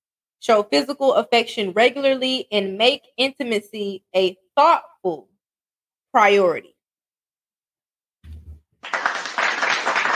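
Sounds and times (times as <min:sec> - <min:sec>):
speech: 0:00.4 - 0:05.3, 0:06.1 - 0:06.7
hands clapping: 0:08.3 - 0:10.1.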